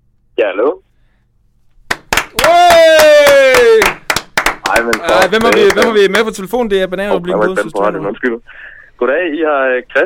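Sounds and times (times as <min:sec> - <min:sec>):
speech: 0:00.4 - 0:00.8, 0:04.8 - 0:10.0
hand clapping in a live radio studio: 0:01.8 - 0:06.4.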